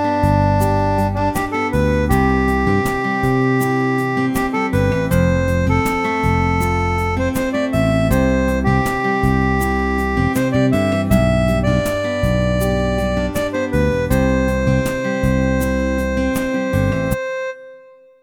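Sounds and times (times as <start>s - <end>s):
guitar strumming: 0.0s - 18.1s.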